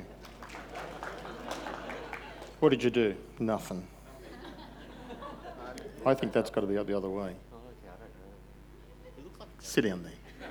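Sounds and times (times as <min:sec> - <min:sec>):
audience applause: 0:00.0 - 0:03.2
laughter: 0:00.0 - 0:08.2, 0:08.8 - 0:09.6, 0:10.2 - 0:10.4
speech: 0:02.6 - 0:04.0, 0:06.0 - 0:07.4, 0:09.6 - 0:10.2.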